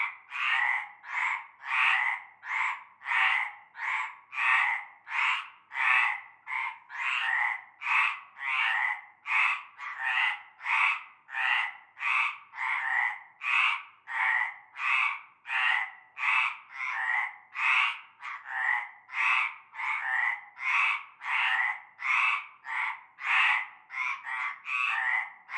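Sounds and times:
frog chorus croaking in a concrete basin of stagnant water: 0.0 - 25.5.

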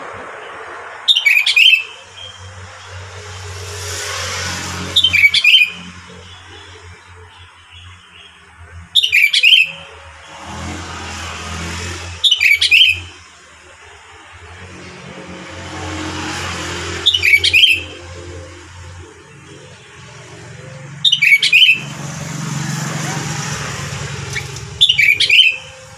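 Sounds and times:
sooty-headed bulbul whistled song: 1.1 - 3.0, 4.9 - 6.6, 9.0 - 9.9, 12.2 - 13.2, 17.0 - 18.1, 21.0 - 21.9, 24.3 - 25.9.

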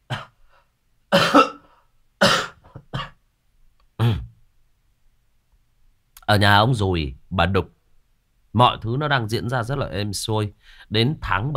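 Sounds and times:
person coughing: 0.1 - 0.4, 1.1 - 3.2, 4.0 - 4.4
speech: 6.3 - 7.8, 8.5 - 11.5.

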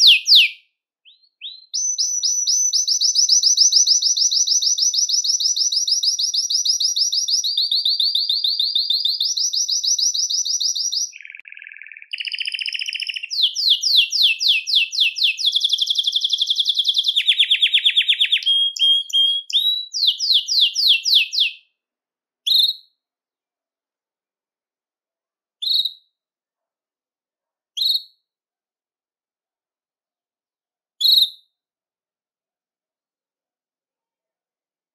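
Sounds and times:
Belgian canary singing: 0.0 - 21.7, 22.4 - 23.0, 25.6 - 26.1.

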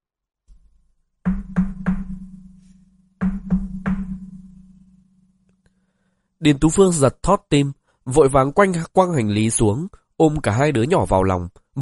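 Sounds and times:
knocking on a room door: 1.3 - 2.3, 3.2 - 4.2
speech: 6.4 - 11.8.

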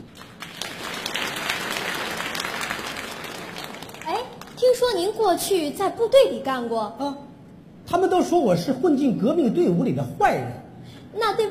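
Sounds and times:
audience applause at a televised crosstalk and comedy sketch competition: 0.0 - 4.6
speech: 4.7 - 7.2, 7.9 - 11.4.

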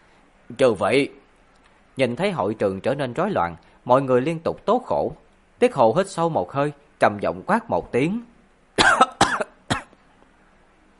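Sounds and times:
speech: 0.5 - 1.2, 2.0 - 9.0
person coughing: 8.8 - 10.0.

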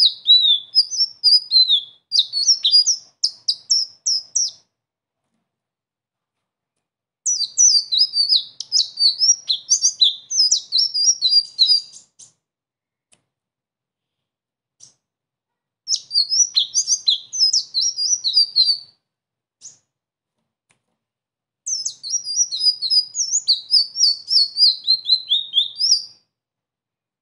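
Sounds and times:
sunbird singing a high-pitched twittering song: 0.0 - 4.6, 7.3 - 12.4, 15.9 - 18.8, 21.7 - 26.2.

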